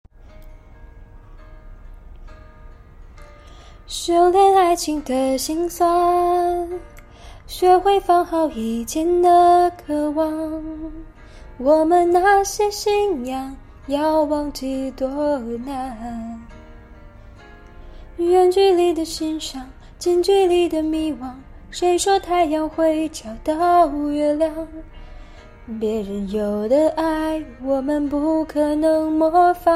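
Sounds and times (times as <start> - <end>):
woman singing in Chinese: 3.9 - 16.6, 18.2 - 24.9, 25.6 - 29.7.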